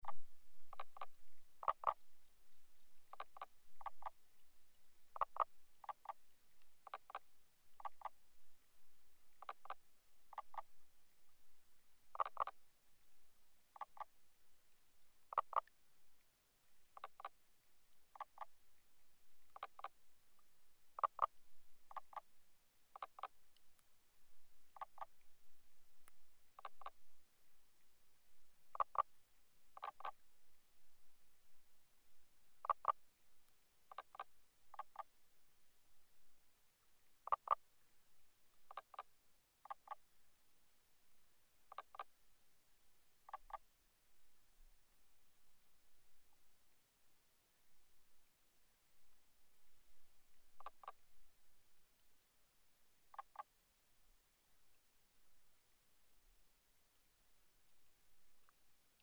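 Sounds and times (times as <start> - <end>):
common spadefoot toads calling at the water recorded with hydrophone: 0.1 - 2.0, 3.1 - 4.2, 5.1 - 6.2, 6.8 - 8.2, 9.4 - 10.7, 12.1 - 12.6, 13.7 - 14.1, 15.3 - 15.7, 17.0 - 17.4, 18.1 - 18.5, 19.5 - 19.9, 21.0 - 21.3, 21.9 - 22.3, 22.9 - 23.4, 24.8 - 25.1, 26.6 - 27.0, 28.7 - 29.1, 29.8 - 30.2, 32.6 - 33.0, 33.9 - 35.1, 37.2 - 37.6, 38.7 - 40.0, 41.7 - 42.1, 43.3 - 43.6, 50.6 - 51.0, 53.1 - 53.5.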